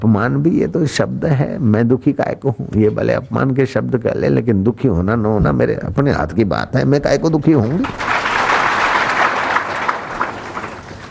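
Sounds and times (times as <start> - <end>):
speech: 0.0 - 8.2
audience clapping: 7.8 - 11.0.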